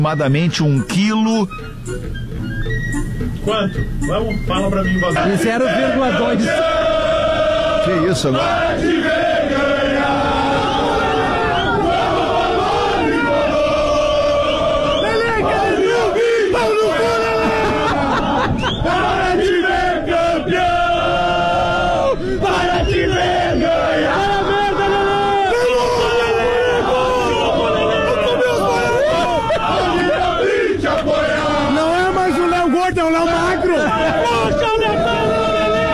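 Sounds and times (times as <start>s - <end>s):
speech: 0.0s - 6.9s, 7.8s - 9.6s
football fans chanting in stadium arena: 5.1s - 35.9s
laughter: 16.6s - 19.1s, 27.1s - 30.3s, 33.4s - 35.0s.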